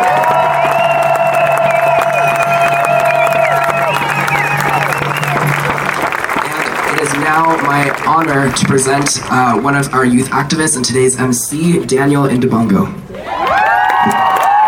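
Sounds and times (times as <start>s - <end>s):
whoops and shouts: 0.0s - 5.4s, 13.2s - 14.6s
audience applause and cheering: 0.0s - 10.1s, 13.1s - 14.6s
speech: 7.5s - 13.0s.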